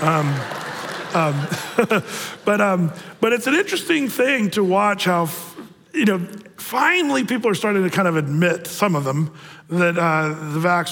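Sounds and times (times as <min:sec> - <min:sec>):
audience clapping: 0:00.0 - 0:02.4
laughter: 0:00.0 - 0:03.1
speech: 0:00.0 - 0:10.9.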